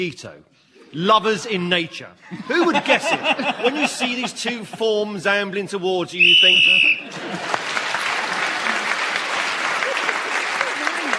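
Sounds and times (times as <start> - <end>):
speech: 0.0 - 7.6
laughter: 1.6 - 5.2, 6.4 - 11.1
crowd applause: 6.2 - 11.1.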